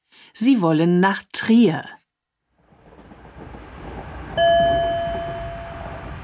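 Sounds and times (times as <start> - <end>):
speech: 0.4 - 2.0
ICE high-speed train rumble on the Frankfurt–Paris route: 2.6 - 6.2
electronic chime: 4.4 - 6.0.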